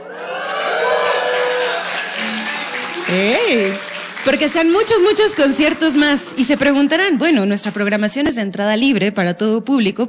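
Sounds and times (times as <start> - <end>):
audience applause: 0.0 - 7.1
speech: 3.1 - 10.0.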